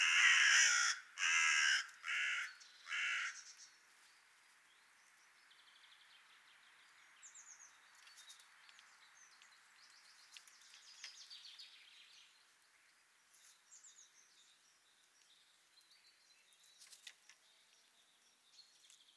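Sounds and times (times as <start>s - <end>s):
Corvus corone calling: 0.0s - 3.5s.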